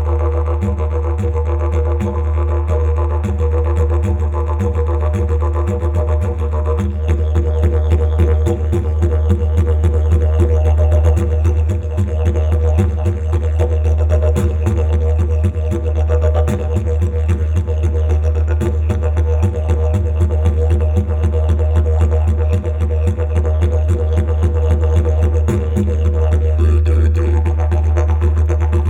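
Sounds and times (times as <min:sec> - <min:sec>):
didgeridoo: 0:00.0 - 0:28.8.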